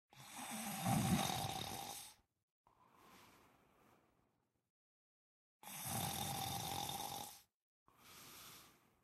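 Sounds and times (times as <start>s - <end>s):
person snoring: 0.2s - 2.2s, 5.6s - 7.5s.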